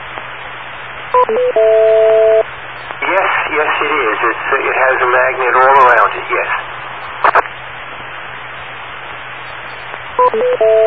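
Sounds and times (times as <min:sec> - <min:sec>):
long steady beep: 0:01.1 - 0:02.4, 0:10.2 - 0:10.8
thin hissy telephone-line background: 0:01.1 - 0:06.0, 0:09.5 - 0:10.8
speech: 0:01.2 - 0:01.9, 0:03.8 - 0:06.7, 0:10.3 - 0:10.8
short electronic tones stepping in pitch: 0:01.2 - 0:02.4, 0:10.2 - 0:10.8.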